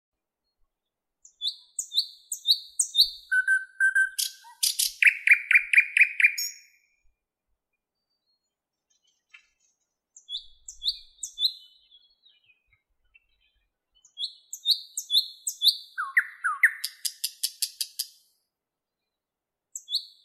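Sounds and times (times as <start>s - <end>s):
nightingale song: 0.2s - 7.1s, 7.7s - 20.2s.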